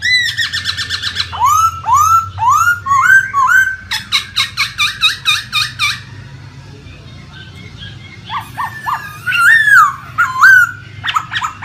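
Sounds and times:
laughingthrush song: 0:00.0 - 0:06.0, 0:07.3 - 0:11.6.

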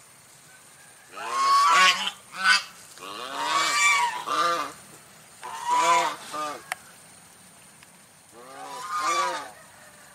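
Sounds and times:
domestic goose honking: 0:01.1 - 0:04.8, 0:05.4 - 0:06.7, 0:08.3 - 0:09.6.

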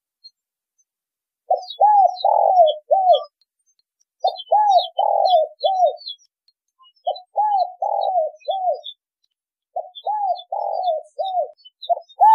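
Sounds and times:
spotted dove cooing: 0:01.5 - 0:03.3, 0:04.2 - 0:06.2, 0:07.0 - 0:09.0, 0:09.8 - 0:12.3.

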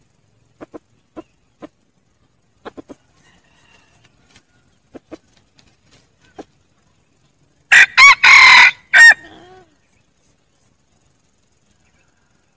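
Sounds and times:
Red junglefowl quiet clucks: 0:00.5 - 0:01.8, 0:02.6 - 0:06.6
Red junglefowl strident four-part crow: 0:03.1 - 0:04.7, 0:07.7 - 0:09.7.

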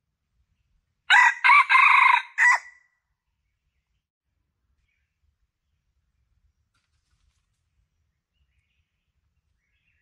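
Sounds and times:
Red junglefowl crowing: 0:01.1 - 0:02.8.

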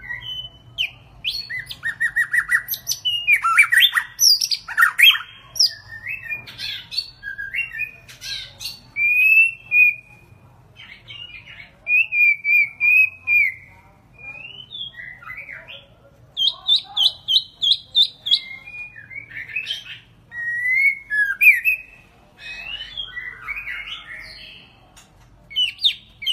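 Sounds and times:
White-rumped shama singing whistles: 0:00.0 - 0:08.0, 0:09.0 - 0:10.2, 0:11.9 - 0:15.6, 0:17.3 - 0:22.0.

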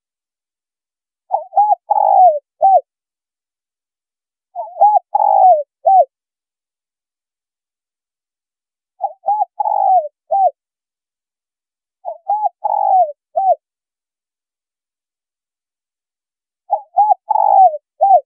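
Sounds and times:
spotted dove cooing: 0:01.3 - 0:02.9, 0:04.6 - 0:06.1, 0:09.0 - 0:10.6, 0:12.0 - 0:13.6, 0:16.7 - 0:18.2.

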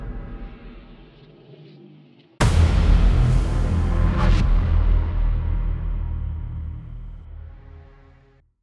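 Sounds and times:
background music for an advertising film intro: 0:02.4 - 0:08.3.

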